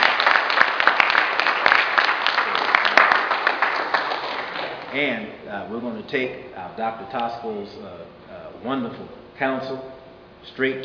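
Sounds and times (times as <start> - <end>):
audience applause: 0.0 - 5.0
speech: 5.0 - 10.8.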